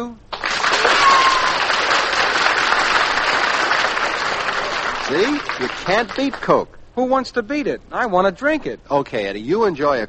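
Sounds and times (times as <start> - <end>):
studio audience applauding: 0.3 - 6.6
speech: 5.1 - 10.0.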